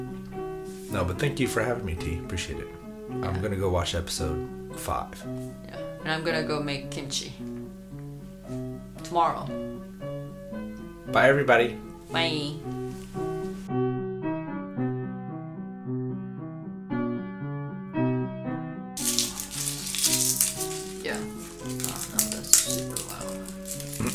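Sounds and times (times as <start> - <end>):
steady melodic music: 0.1 - 24.1
speech: 0.9 - 7.6, 8.5 - 9.9, 11.1 - 12.8
garlic sizzling in a frying pan: 19.0 - 24.1.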